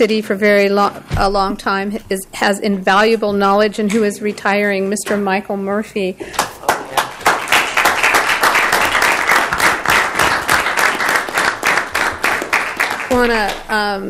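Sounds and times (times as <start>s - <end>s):
speech: 0.0s - 6.6s, 13.2s - 14.0s
audience applause: 6.4s - 13.2s.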